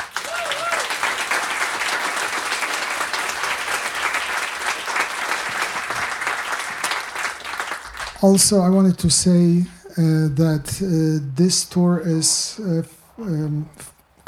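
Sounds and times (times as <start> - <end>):
applause: 0.0 - 8.5
speech: 8.2 - 14.2.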